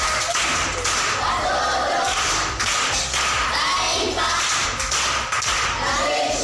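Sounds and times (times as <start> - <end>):
audience at a primary school event clapping: 0.0 - 6.3.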